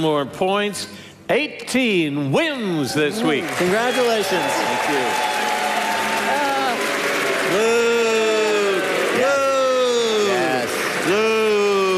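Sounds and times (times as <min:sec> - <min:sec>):
speech: 0:00.0 - 0:05.4
canned applause: 0:02.8 - 0:11.9
cheering voices: 0:03.1 - 0:11.9.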